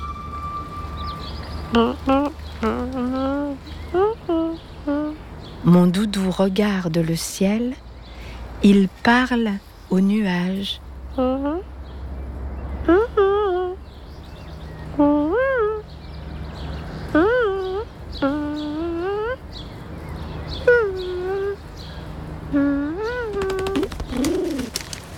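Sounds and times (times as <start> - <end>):
speech: 1.7 - 2.3, 5.9 - 7.9, 8.6 - 11.7
voice imitating pigeon cooing: 1.7 - 5.2, 12.9 - 13.8, 17.1 - 19.4, 20.6 - 21.7, 22.5 - 25.1.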